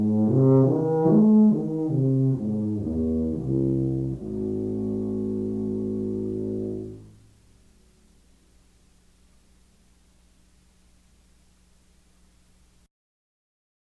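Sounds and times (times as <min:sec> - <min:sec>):
tuba: 0:00.0 - 0:07.2.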